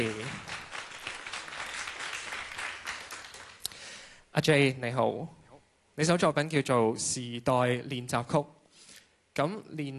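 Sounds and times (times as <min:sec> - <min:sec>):
speech: 0:00.0 - 0:00.4, 0:04.4 - 0:05.4, 0:06.0 - 0:08.6, 0:09.4 - 0:09.9
audience applause welcoming a guest onto a stage: 0:00.0 - 0:03.7.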